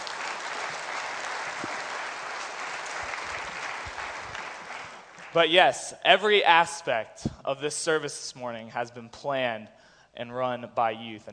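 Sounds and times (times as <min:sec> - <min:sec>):
audience applause: 0:00.0 - 0:05.5
speech: 0:05.3 - 0:11.3.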